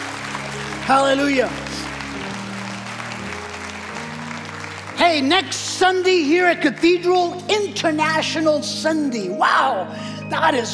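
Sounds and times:
audience applause: 0.0s - 7.1s
speech: 0.9s - 1.6s, 5.0s - 10.7s.

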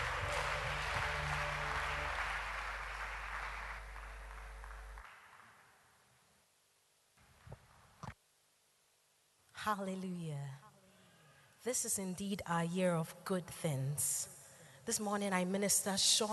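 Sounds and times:
church congregation applauding a female singer: 0.0s - 6.0s
speech: 9.6s - 10.6s, 11.6s - 16.3s.

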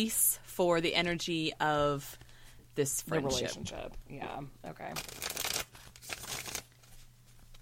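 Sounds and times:
speech: 0.0s - 2.2s, 2.8s - 5.4s
Way Home Tarot cards being shuffled: 4.8s - 7.6s.

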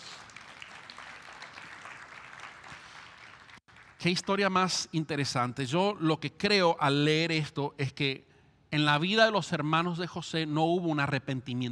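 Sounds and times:
audience applause: 0.0s - 4.0s
speech: 4.0s - 11.7s.

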